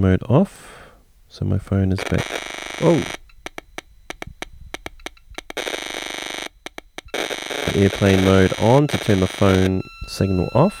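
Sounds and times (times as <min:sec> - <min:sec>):
speech: 0:00.0 - 0:03.2, 0:07.8 - 0:10.7
meter low-battery warning beep: 0:02.0 - 0:10.7
rapid tapping clicks: 0:03.2 - 0:05.8, 0:06.4 - 0:07.7.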